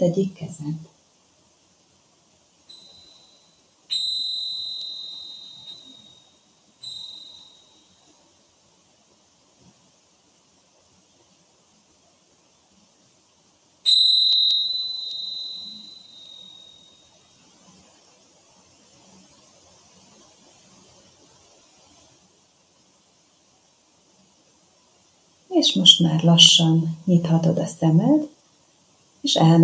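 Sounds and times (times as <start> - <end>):
speech: 0.0 - 1.0, 25.6 - 28.4, 29.2 - 29.6
small hand bell ringing: 2.7 - 8.0, 13.9 - 17.1.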